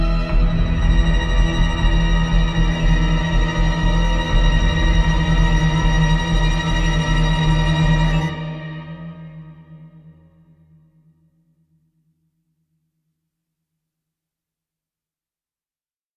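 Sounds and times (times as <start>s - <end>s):
tension ambient music: 0.0s - 11.0s.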